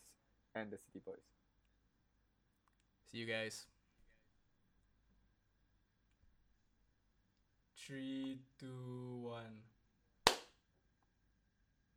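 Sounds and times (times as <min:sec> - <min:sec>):
speech: 0:00.6 - 0:01.5, 0:03.1 - 0:03.8, 0:07.9 - 0:09.7
group clapping hands: 0:10.3 - 0:10.6.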